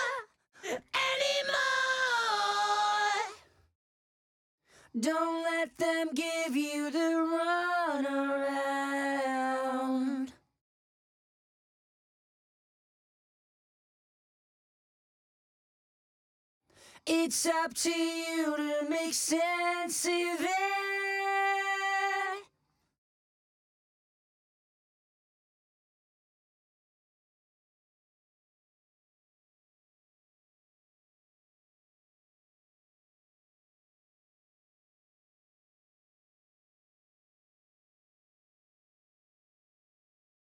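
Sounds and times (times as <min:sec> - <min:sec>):
main vocals: 0:00.0 - 0:03.5, 0:04.9 - 0:10.4, 0:17.0 - 0:22.5.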